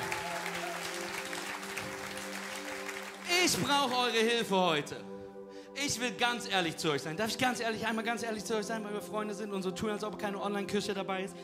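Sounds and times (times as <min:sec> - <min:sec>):
audience applause: 0:00.0 - 0:04.0
speech: 0:03.4 - 0:11.4.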